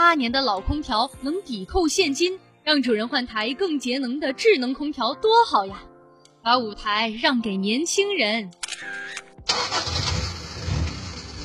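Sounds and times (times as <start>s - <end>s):
speech: 0.1s - 9.7s
old car engine starting: 9.5s - 11.4s.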